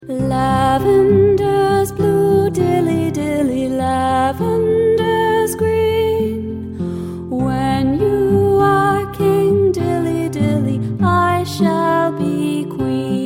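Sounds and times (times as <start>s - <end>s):
person singing: 0.0s - 6.6s, 7.2s - 13.2s.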